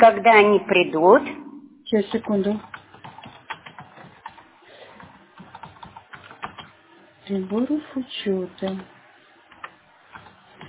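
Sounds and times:
speech: 0.0 - 2.7, 7.3 - 8.9
fingers typing a request on a computer keyboard: 2.1 - 7.7, 9.5 - 10.6.

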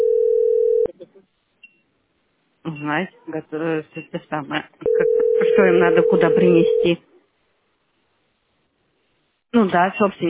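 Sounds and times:
telephone dial tone during a call to a heating utility: 0.0 - 0.9, 4.8 - 6.9
speech: 2.8 - 7.1, 9.6 - 10.2.

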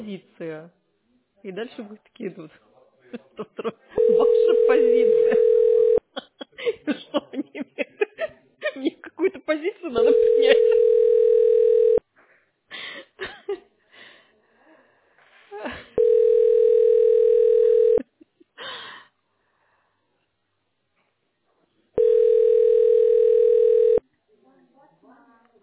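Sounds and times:
speech: 0.0 - 0.8, 1.4 - 5.8, 9.5 - 11.1
laughter: 3.1 - 4.2, 5.2 - 9.3, 10.0 - 11.0
telephone tones after call connects: 4.0 - 6.0, 10.0 - 12.0, 16.0 - 18.0, 22.0 - 24.0.

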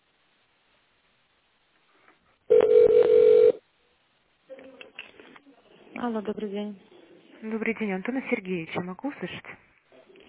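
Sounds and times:
telephone ringback tone: 2.5 - 3.6
speech: 6.0 - 9.6.

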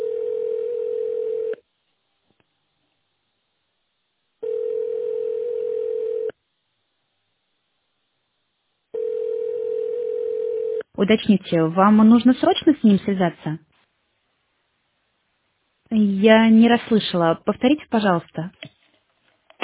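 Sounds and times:
telephone ringback tone: 0.0 - 1.6, 4.4 - 6.4, 9.0 - 10.8
speech: 11.0 - 13.7, 16.2 - 18.7.

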